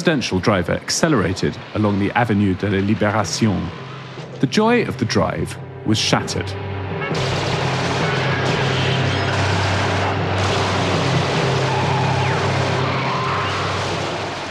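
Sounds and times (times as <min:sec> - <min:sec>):
speech: 0:00.0 - 0:07.5
machine gun fire riddling a car: 0:07.2 - 0:14.4.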